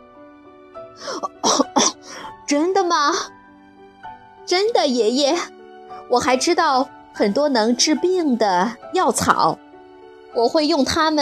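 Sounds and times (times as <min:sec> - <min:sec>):
person coughing: 0:01.0 - 0:02.1
speech: 0:01.0 - 0:03.4, 0:04.5 - 0:09.6, 0:10.3 - 0:11.2.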